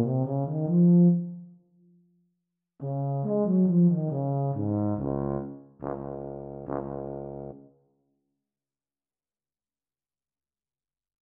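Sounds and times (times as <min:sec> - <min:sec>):
Eb tuba duet practice: 0:00.0 - 0:01.5, 0:02.8 - 0:07.6.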